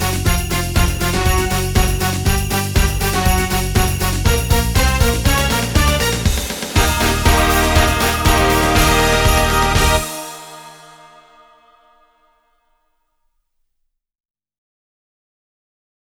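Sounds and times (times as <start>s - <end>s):
jingle bell: 0.0s - 11.8s.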